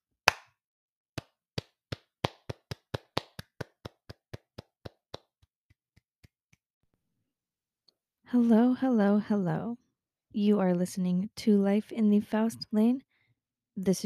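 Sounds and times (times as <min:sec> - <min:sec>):
hand clapping: 0:00.3 - 0:00.5, 0:01.2 - 0:06.7
speech: 0:08.3 - 0:13.1, 0:13.8 - 0:14.0.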